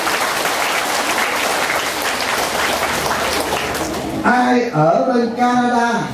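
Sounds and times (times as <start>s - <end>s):
crowd at a Buddhist gathering clapping: 0.0s - 4.3s
speech: 4.2s - 6.1s.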